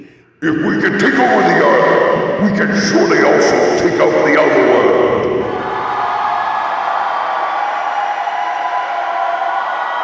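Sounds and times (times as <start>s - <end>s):
speech: 0.0s - 5.0s
crowd applauding: 5.6s - 10.0s.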